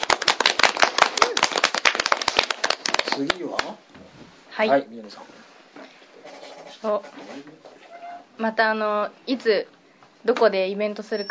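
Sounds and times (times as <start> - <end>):
audience applause: 0.0 - 3.8
speech: 3.2 - 5.5, 6.8 - 7.8, 8.4 - 11.2.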